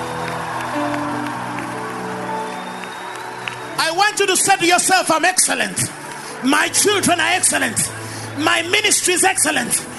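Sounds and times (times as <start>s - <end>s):
audience clapping: 0.0s - 8.0s
speech: 4.1s - 9.9s.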